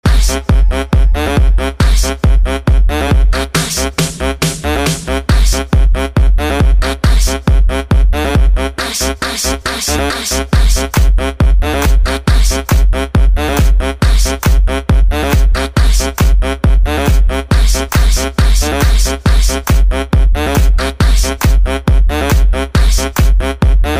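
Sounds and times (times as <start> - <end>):
disco club music: 0.0 - 23.9.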